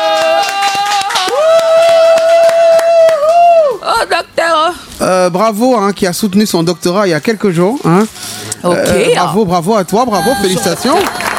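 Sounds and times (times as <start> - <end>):
audience applause: 0.0 - 3.6, 10.4 - 11.3
speech: 5.1 - 11.2.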